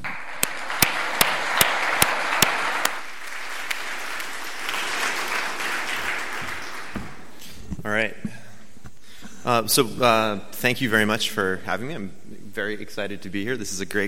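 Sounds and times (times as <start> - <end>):
audience applause: 0.0 - 7.4
loud sharp clap: 0.0 - 7.4
speech: 9.5 - 14.0.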